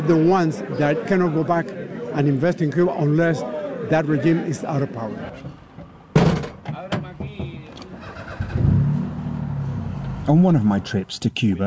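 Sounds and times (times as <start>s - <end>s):
speech: 0.0s - 5.5s, 10.3s - 11.6s
car engine cranking, idling and revving as it pulls away: 7.8s - 10.8s.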